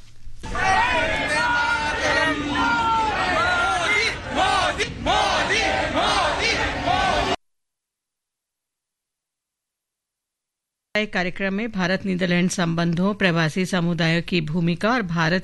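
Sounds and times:
crowd chanting political slogans: 0:00.5 - 0:07.4
speech: 0:11.0 - 0:15.4.

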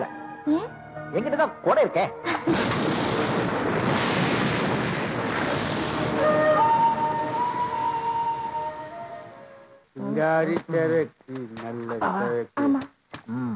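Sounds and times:
speech: 0:00.4 - 0:02.7, 0:10.2 - 0:13.5
long heavy roll of thunder before rain: 0:02.5 - 0:09.3.

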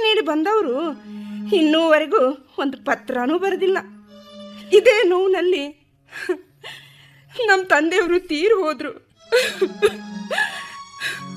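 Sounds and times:
speech: 0:00.3 - 0:04.0, 0:04.7 - 0:06.8, 0:07.4 - 0:11.3
woman sobbing in a Kannada drama scene: 0:06.1 - 0:07.0, 0:09.3 - 0:11.3.

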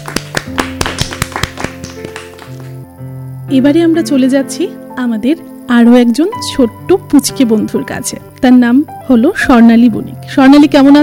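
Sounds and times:
people clapping for two young children in a studio: 0:00.0 - 0:02.9
speech: 0:03.5 - 0:11.0.

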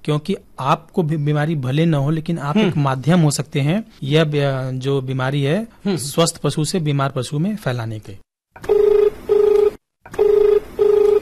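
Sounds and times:
speech: 0:00.0 - 0:08.3
telephone ringing for an incoming call: 0:08.6 - 0:11.2.

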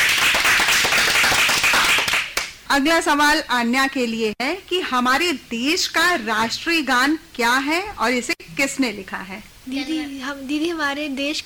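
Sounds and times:
group applause at a quiz: 0:00.0 - 0:02.6
speech: 0:02.7 - 0:11.4.

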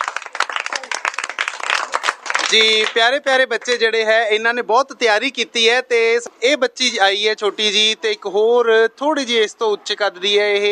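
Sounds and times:
audience clapping for children performing at a school event: 0:00.0 - 0:03.8
speech: 0:02.5 - 0:10.7.

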